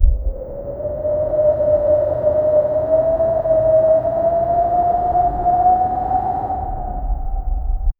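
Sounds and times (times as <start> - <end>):
winter wind howling: 0.0 - 7.9.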